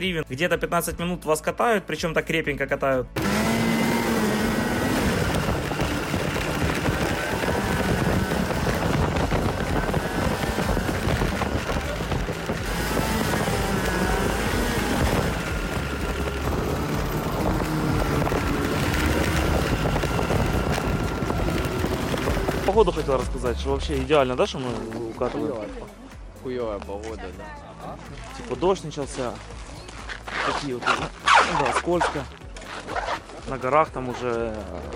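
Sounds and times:
speech: 0.0 - 3.8, 22.8 - 29.6, 30.3 - 34.9
snowmobile engine droning during a ride: 3.2 - 23.8
wind rushing: 3.6 - 23.3.

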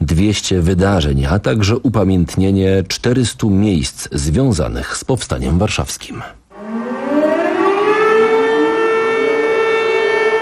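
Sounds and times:
speech: 0.2 - 6.4
air raid sirens over Warsaw during the Warsaw Uprising commemoration: 6.5 - 10.3.

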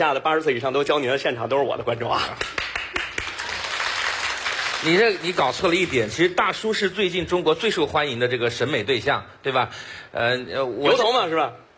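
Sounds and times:
speech: 0.0 - 2.6, 4.8 - 11.6
live audience applause: 2.4 - 6.1.

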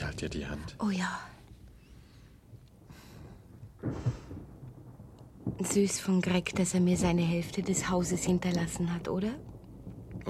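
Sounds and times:
speech: 0.2 - 1.3, 5.6 - 9.5
thunder of an approaching thunderstorm: 2.9 - 10.2.

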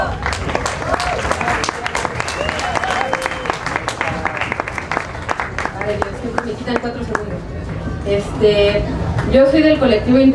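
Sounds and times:
audience applause: 0.0 - 7.3
speech: 5.9 - 10.3.

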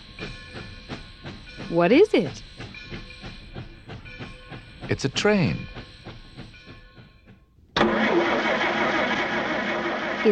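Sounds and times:
speech: 1.7 - 2.5, 5.0 - 5.7
car engine: 7.8 - 10.3.

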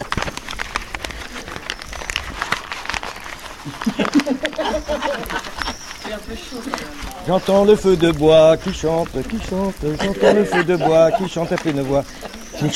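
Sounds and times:
newspaper crumpled and crinkled right against the microphone: 0.0 - 12.7
laughter: 3.6 - 12.7
speech: 3.8 - 5.5, 6.1 - 12.7.

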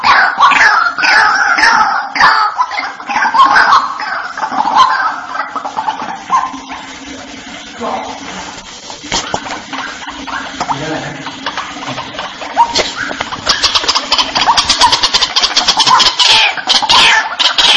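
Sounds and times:
White-breasted waterhen calling: 0.0 - 6.8, 12.6 - 17.7.

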